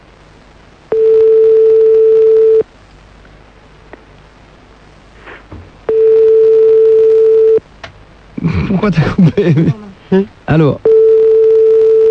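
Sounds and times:
telephone ringback tone: 0:00.9 - 0:02.6, 0:05.9 - 0:07.6, 0:10.9 - 0:12.0
laughter: 0:08.4 - 0:09.9
speech: 0:08.8 - 0:10.8.

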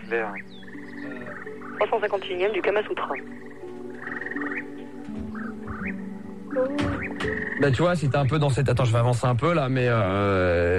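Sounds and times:
frog croaking sound effect: 0:00.0 - 0:08.0
speech: 0:00.1 - 0:03.6, 0:06.6 - 0:10.7.

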